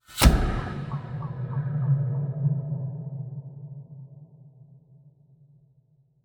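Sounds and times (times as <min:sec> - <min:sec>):
trailer hit: 0:00.1 - 0:03.7.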